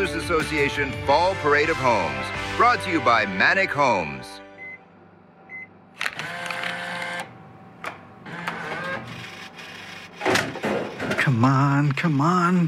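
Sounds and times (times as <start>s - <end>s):
speech: 0.3s - 4.2s, 11.3s - 12.6s
vending machine whirring and clunking dispensing items: 5.4s - 12.6s.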